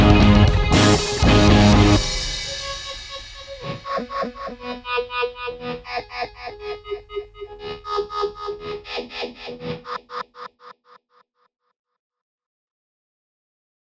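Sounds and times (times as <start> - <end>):
guitar: 0.0 - 10.6.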